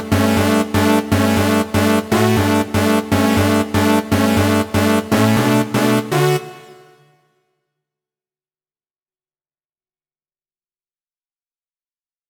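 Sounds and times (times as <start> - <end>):
heroic brass music: 0.0 - 7.1.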